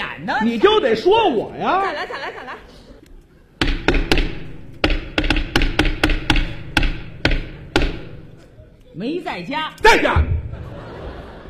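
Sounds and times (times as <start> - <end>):
speech: 0.2 - 2.7, 9.0 - 10.4
laughter: 1.7 - 3.2, 10.4 - 11.4
knocking on a door: 3.6 - 8.3.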